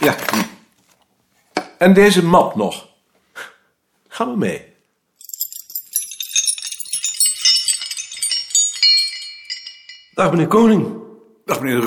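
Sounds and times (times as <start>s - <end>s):
speech: 0.0s - 0.4s, 1.8s - 2.9s, 4.2s - 4.7s, 10.2s - 11.8s
keys jingling: 5.2s - 10.2s.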